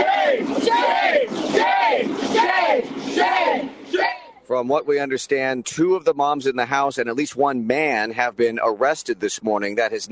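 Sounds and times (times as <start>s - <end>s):
protesters chanting and yelling at officers: 0.0s - 5.2s
speech: 4.6s - 10.1s.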